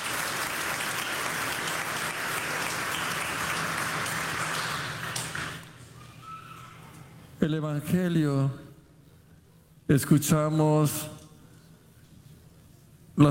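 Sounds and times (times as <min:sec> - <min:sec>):
audience applause: 0:00.0 - 0:06.3
speech: 0:07.4 - 0:08.6, 0:09.9 - 0:11.2.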